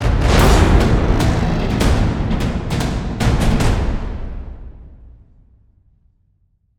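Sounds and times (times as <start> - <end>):
musical stinger fill: 0.2 - 4.3.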